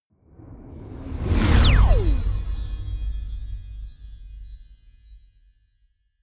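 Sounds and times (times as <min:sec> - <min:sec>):
magic warp personal jump sparkle: 0:00.9 - 0:05.1.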